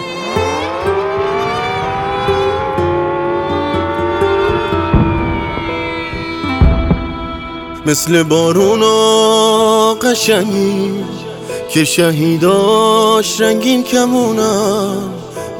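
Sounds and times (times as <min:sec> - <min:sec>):
air raid warning siren: 0:00.0 - 0:09.2
speech: 0:07.9 - 0:15.5.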